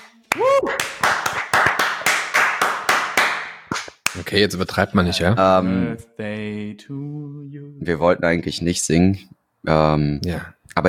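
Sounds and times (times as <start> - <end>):
hands clapping: 0.0 - 4.3
person whooping: 0.3 - 1.0
speech: 4.3 - 10.8.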